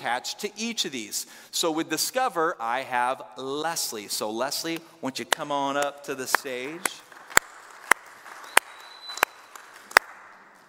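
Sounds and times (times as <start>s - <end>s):
speech: 0.0s - 7.0s
audience clapping: 5.3s - 10.6s.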